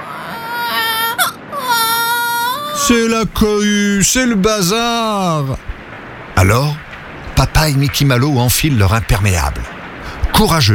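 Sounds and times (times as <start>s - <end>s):
baby crying as a sound effect for a baby ant in a children's story: 0.0s - 3.0s
speech: 2.9s - 5.7s, 6.4s - 6.8s, 7.4s - 9.8s, 10.4s - 10.7s.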